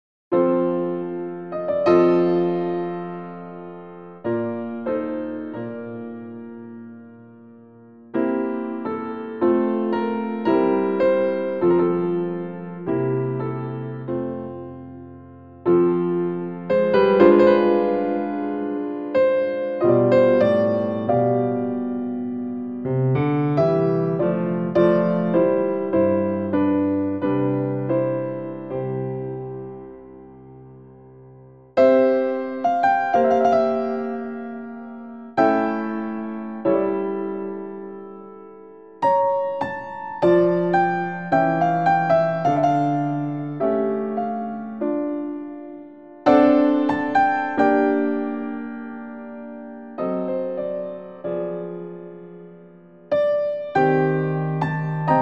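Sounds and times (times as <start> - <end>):
piano: 0.3 - 55.2.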